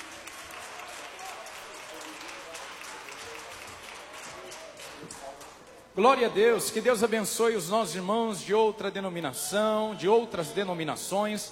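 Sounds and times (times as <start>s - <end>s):
congregation applauding: 0.0s - 5.8s
speech: 6.0s - 11.4s.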